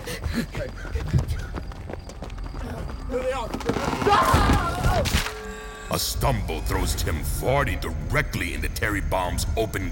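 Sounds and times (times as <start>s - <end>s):
two people running away on foot in an audio drama: 0.0s - 5.0s
speech: 0.4s - 1.2s, 3.1s - 5.2s, 5.9s - 9.9s.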